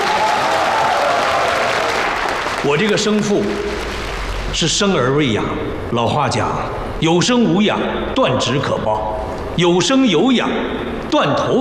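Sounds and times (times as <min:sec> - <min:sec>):
guests applauding at a wedding: 0:00.0 - 0:04.6
speech: 0:02.6 - 0:03.9, 0:04.5 - 0:11.5.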